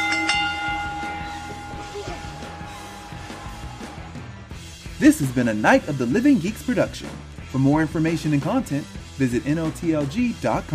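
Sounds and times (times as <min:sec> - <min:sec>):
bell ringing: 0:00.0 - 0:04.0
speech: 0:05.0 - 0:10.7.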